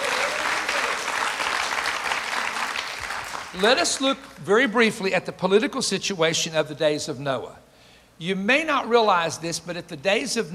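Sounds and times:
audience clapping: 0.0s - 4.4s
speech: 3.6s - 7.6s, 8.2s - 10.5s.

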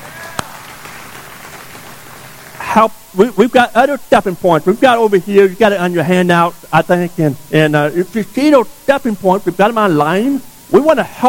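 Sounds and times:
audience applause: 0.0s - 2.6s
speech: 2.8s - 11.2s.

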